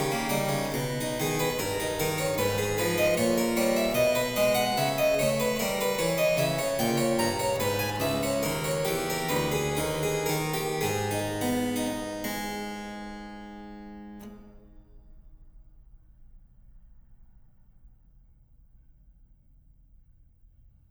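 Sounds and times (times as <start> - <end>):
harpsichord invention: 0.0 - 14.5.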